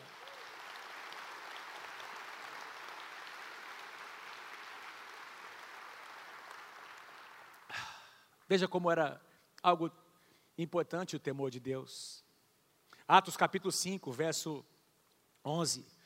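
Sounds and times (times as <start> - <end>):
audience applause: 0.0 - 8.2
speech: 8.5 - 10.0, 10.6 - 12.2, 13.1 - 14.7, 15.4 - 16.0.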